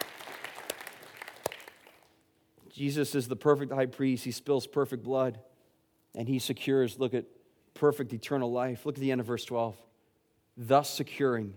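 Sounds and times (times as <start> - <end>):
audience clapping: 0.0 - 2.2
speech: 2.8 - 5.5, 6.1 - 9.9, 10.6 - 11.5.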